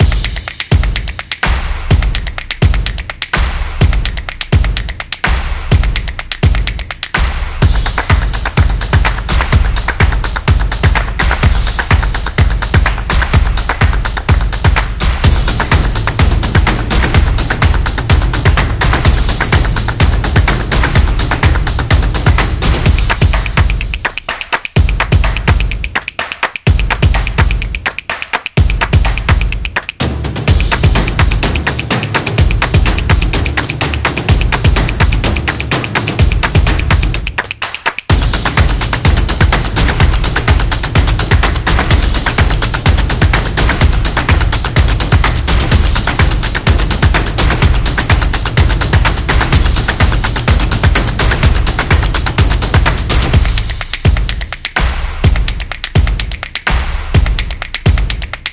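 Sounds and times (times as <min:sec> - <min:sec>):
football percussion background music inspired by samba rhythm: 0:00.0 - 0:58.5.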